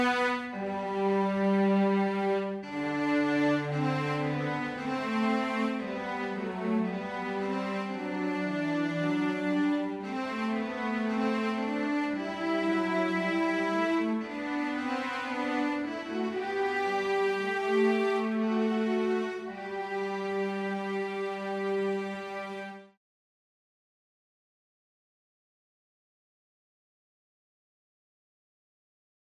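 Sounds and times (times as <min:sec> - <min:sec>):
fugue in G: 0:00.0 - 0:23.0.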